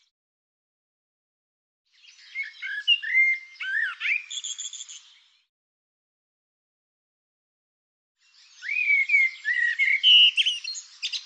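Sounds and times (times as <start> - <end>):
bird song: 1.9 - 5.5, 8.2 - 11.2.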